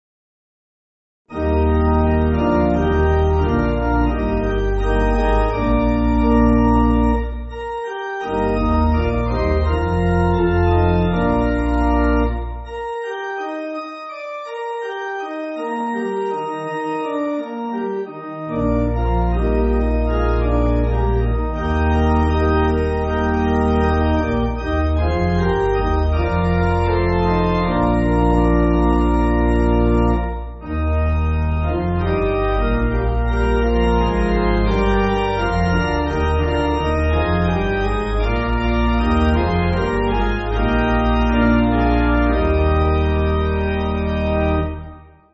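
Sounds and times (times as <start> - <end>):
congregational pipe organ: 1.3 - 45.3.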